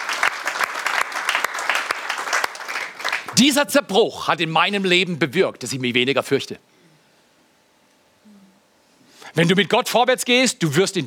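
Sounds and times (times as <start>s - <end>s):
audience applause: 0.0s - 3.5s
speech: 3.4s - 6.7s, 9.4s - 11.0s.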